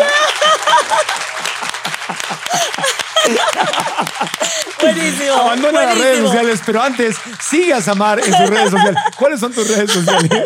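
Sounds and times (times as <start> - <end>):
crowd applause: 0.0 - 10.4
laughter: 0.0 - 10.4
speech: 4.4 - 10.4.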